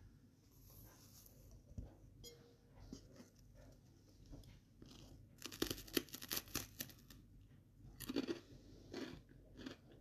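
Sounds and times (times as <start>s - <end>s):
making crunchy sandwiches: 2.9s - 9.9s
person eating crunchy sandwiches: 4.7s - 7.2s, 7.8s - 9.9s.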